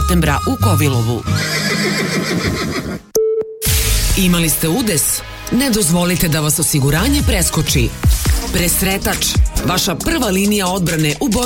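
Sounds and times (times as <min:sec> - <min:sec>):
speech: 0:00.1 - 0:03.2, 0:04.2 - 0:11.4
horse neighing: 0:01.3 - 0:03.1.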